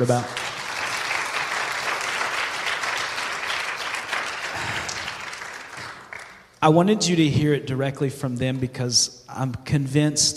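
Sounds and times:
speech: 0.0 - 0.4, 6.6 - 10.3
audience applauding: 0.0 - 6.6.

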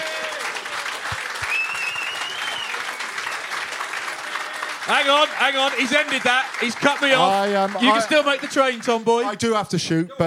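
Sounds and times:
crowd whoops and cheers: 0.0 - 5.8
audience applause at live podcast: 0.0 - 9.5
speech: 4.9 - 10.2.

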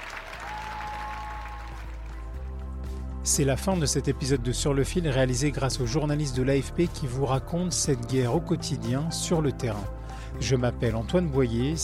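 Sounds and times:
audience applause after a performance: 0.0 - 2.5
speech: 3.3 - 11.8.

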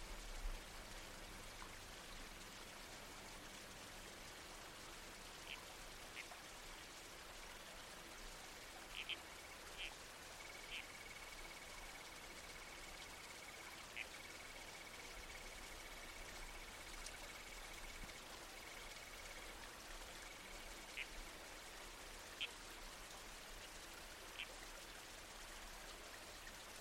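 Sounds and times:
creek water rushing: 0.0 - 26.7
red-crowned toadlet calls: 8.9 - 19.5, 20.2 - 21.2.

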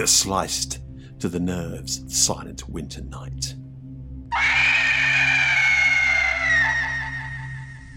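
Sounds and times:
speech: 0.0 - 3.6
long piercing howl: 4.3 - 7.9.

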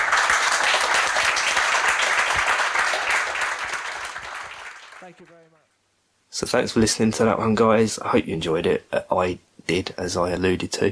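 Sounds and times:
audience applauding: 0.0 - 5.6
speech: 5.1 - 5.6, 6.3 - 10.9.

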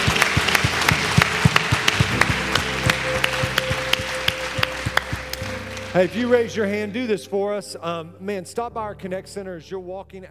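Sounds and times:
crowd applauding: 0.0 - 7.0
speech: 6.0 - 10.2.

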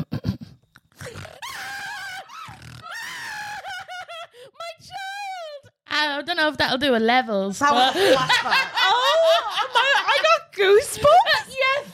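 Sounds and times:
person imitating cry of a distressed mother pig: 1.0 - 3.6
speech: 6.2 - 9.0, 10.6 - 11.4
laughter: 7.7 - 11.9.

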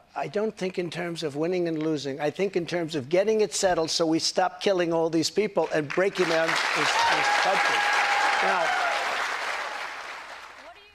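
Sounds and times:
speech: 0.2 - 8.8
applause: 5.6 - 10.9.

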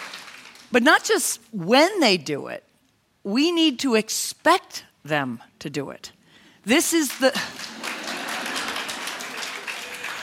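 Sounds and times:
audience clapping: 0.0 - 0.7, 7.1 - 10.2
speech: 0.7 - 7.8.

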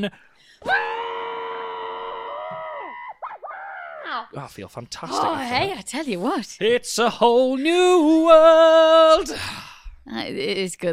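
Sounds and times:
speech: 0.0 - 0.8, 4.2 - 10.9
scream muffled into a pillow: 0.6 - 4.1.

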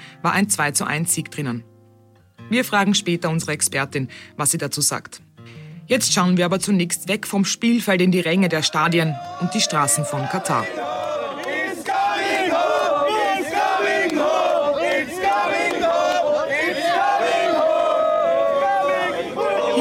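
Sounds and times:
speech: 0.2 - 1.7, 2.5 - 11.1
English football fans cheering: 8.2 - 19.7.

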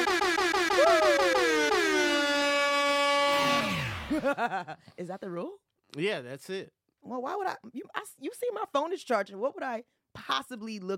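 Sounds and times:
buzzer: 0.0 - 4.1
laughter: 4.1 - 4.9
speech: 4.2 - 10.9.

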